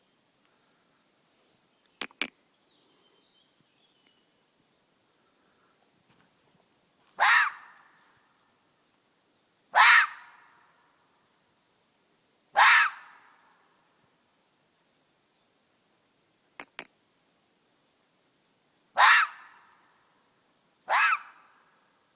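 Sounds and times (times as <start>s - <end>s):
red fox screams: 7.2s - 7.8s, 9.8s - 10.4s, 12.6s - 13.2s, 19.0s - 19.6s, 20.9s - 21.5s.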